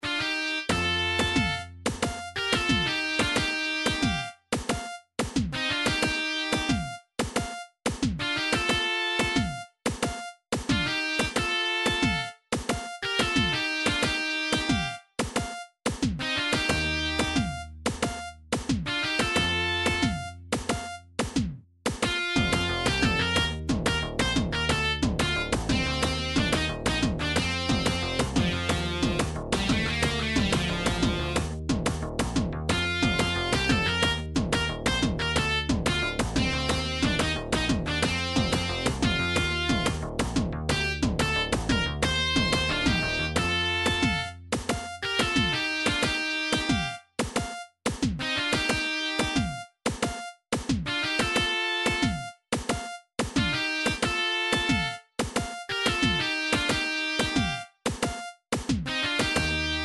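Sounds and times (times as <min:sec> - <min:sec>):
Nintendo MIDI video game music: 0:00.0 - 0:59.8.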